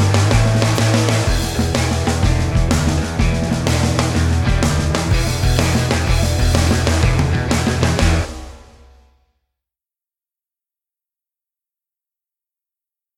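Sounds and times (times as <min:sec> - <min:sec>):
drums: 0:00.0 - 0:09.2.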